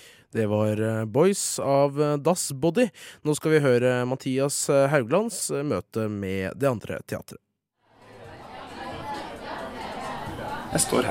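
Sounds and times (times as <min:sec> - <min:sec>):
speech: 0:00.3 - 0:07.4, 0:10.7 - 0:11.0
theatre audience chattering before doors open: 0:07.9 - 0:11.0
people laughing: 0:08.0 - 0:11.0.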